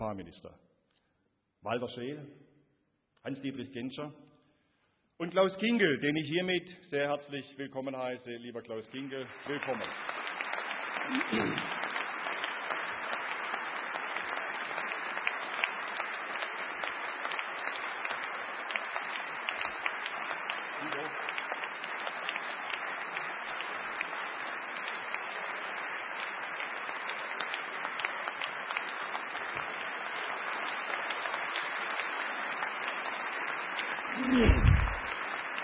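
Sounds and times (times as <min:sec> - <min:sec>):
speech: 0:00.2 - 0:00.7, 0:01.6 - 0:02.5, 0:03.2 - 0:04.3, 0:05.2 - 0:10.2, 0:11.0 - 0:11.8
audience applause: 0:09.1 - 0:35.6.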